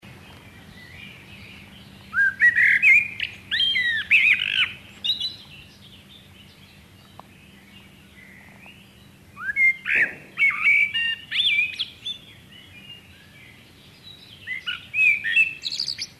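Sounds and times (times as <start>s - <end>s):
common blackbird Turdus merula merula singing warbled phrases: 0.0s - 16.1s.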